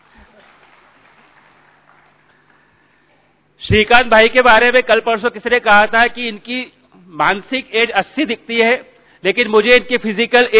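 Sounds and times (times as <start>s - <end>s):
faint audience applause at a gathering: 0.0s - 2.8s
speech: 3.7s - 10.5s.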